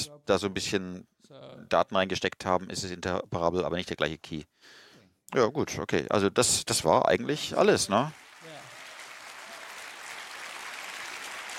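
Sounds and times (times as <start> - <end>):
speech: 0.2 - 8.6
applause in a hall: 7.6 - 11.5.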